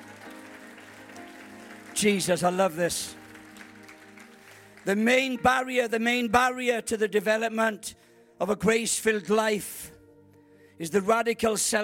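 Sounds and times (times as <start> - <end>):
audience clapping: 0.0 - 5.4
speech: 2.0 - 3.2, 4.8 - 9.9, 10.8 - 11.8.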